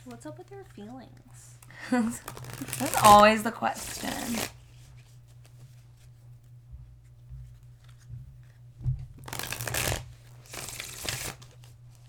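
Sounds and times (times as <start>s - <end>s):
speech: 0.1s - 4.6s
deck of tarot cards shuffled: 0.6s - 5.6s, 9.2s - 12.0s.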